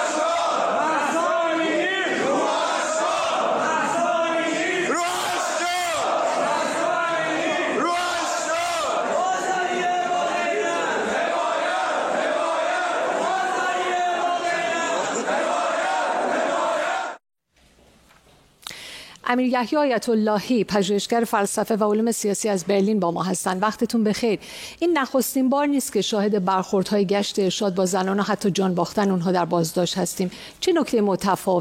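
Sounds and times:
protest crowd chanting in the Tehran bazaar: 0:00.0 - 0:17.2
shopkeepers shouting slogans in support of the protests: 0:00.0 - 0:17.2
speech: 0:19.3 - 0:31.5.

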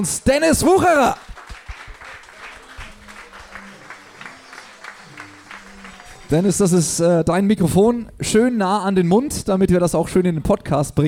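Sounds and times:
speech: 0:00.0 - 0:01.3, 0:06.3 - 0:11.0
audience applause welcoming coach on stage: 0:00.8 - 0:07.0.

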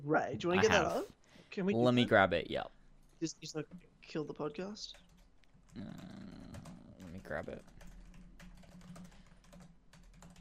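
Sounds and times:
speech: 0:00.0 - 0:05.0, 0:05.8 - 0:06.4, 0:07.3 - 0:07.8
typing on a computer keyboard: 0:04.9 - 0:10.3.

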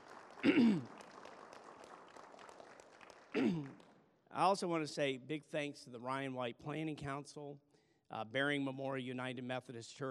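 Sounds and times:
audience applause: 0:00.0 - 0:04.0
speech: 0:04.4 - 0:10.0.

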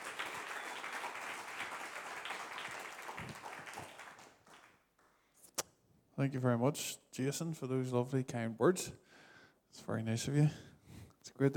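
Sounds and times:
audience applause welcoming a speaker to the stage: 0:00.0 - 0:04.8
speech: 0:06.2 - 0:10.7, 0:11.4 - 0:11.5.

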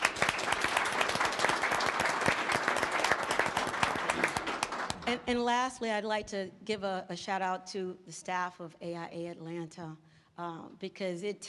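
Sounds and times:
audience applause: 0:00.0 - 0:05.1
speech: 0:05.1 - 0:11.4.

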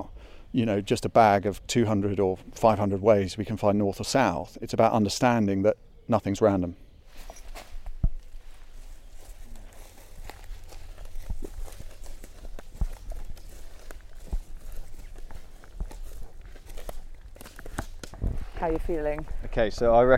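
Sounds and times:
speech: 0:00.5 - 0:06.8, 0:18.8 - 0:20.1
footsteps of people walking outdoors on a natural navigation test walk: 0:07.0 - 0:19.5.

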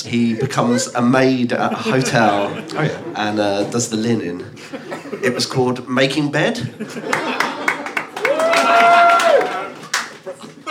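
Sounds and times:
speech: 0:00.0 - 0:07.5
laughter: 0:01.6 - 0:05.8, 0:06.6 - 0:09.4, 0:10.2 - 0:10.6
one man applauding sarcastically: 0:07.1 - 0:10.2.

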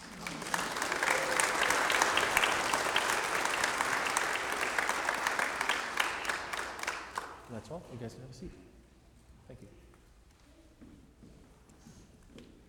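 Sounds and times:
audience clapping: 0:00.0 - 0:07.5
speech: 0:07.8 - 0:08.8.

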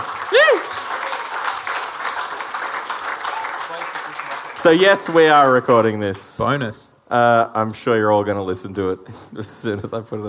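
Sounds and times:
audience applause: 0:00.0 - 0:05.6
speech: 0:04.6 - 0:10.2.

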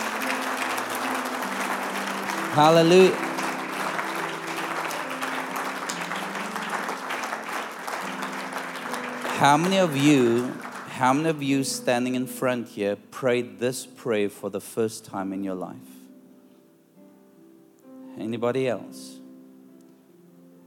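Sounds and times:
audience clapping: 0:00.0 - 0:11.6
speech: 0:02.6 - 0:03.2, 0:09.4 - 0:15.9, 0:18.3 - 0:19.2.

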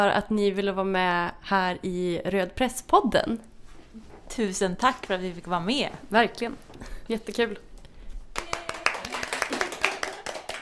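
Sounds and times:
speech: 0:00.0 - 0:07.7
small round of applause: 0:08.3 - 0:10.6.

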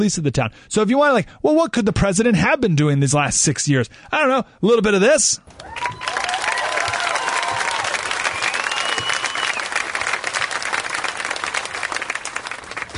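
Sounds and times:
speech: 0:00.0 - 0:06.2
faint whoops and whistles: 0:05.6 - 0:09.7
large crowd applauding at an outdoor rally: 0:05.6 - 0:12.9.

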